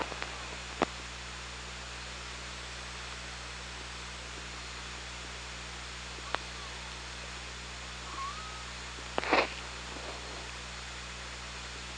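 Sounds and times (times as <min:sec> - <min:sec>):
hydrophone hum and hiss: 0:00.0 - 0:11.9
killer whale call: 0:08.0 - 0:08.8.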